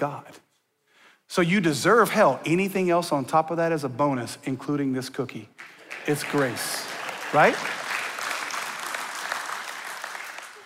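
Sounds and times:
speech: 0.0 - 0.4, 1.3 - 7.8
audience clapping: 5.6 - 10.6.

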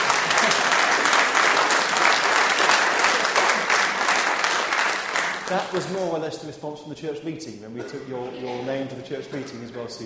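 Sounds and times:
group applauding: 0.0 - 6.1
speech: 5.5 - 10.0.

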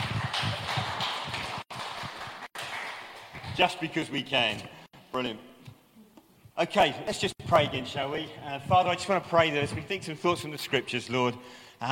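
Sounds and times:
audience clapping: 0.0 - 4.1
speech: 3.6 - 5.5, 6.6 - 11.8.

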